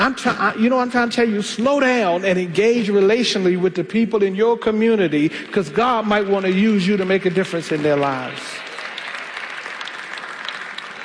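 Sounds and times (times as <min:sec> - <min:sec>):
speech: 0:00.0 - 0:08.7
church congregation clapping during a sermon: 0:04.9 - 0:11.0.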